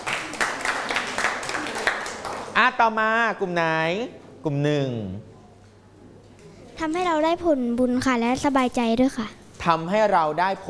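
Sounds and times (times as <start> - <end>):
group clapping for classmates after a presentation: 0.0 - 2.6
speech: 2.6 - 5.3, 6.8 - 10.6.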